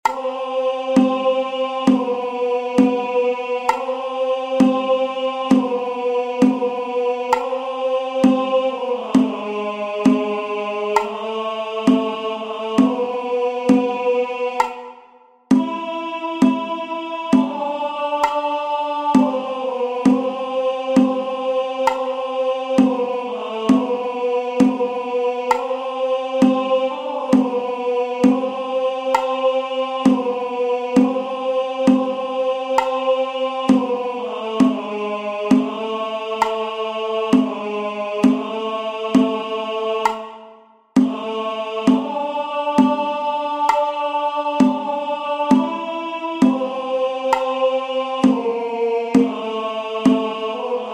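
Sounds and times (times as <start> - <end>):
tenor singing: 0.0 - 50.9.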